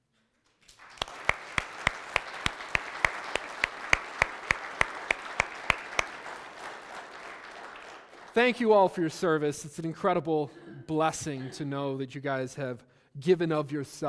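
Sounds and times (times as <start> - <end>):
audience applause: 0.7 - 8.6
speech: 8.4 - 14.0.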